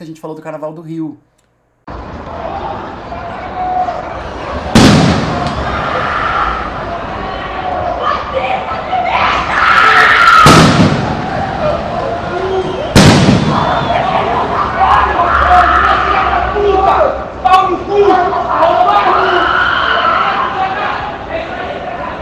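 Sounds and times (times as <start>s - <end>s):
speech: 0.0s - 1.3s
carnival street crowd shouting and chattering: 1.9s - 22.2s
firecracker bangs: 4.5s - 5.8s, 10.3s - 11.8s, 12.9s - 14.2s.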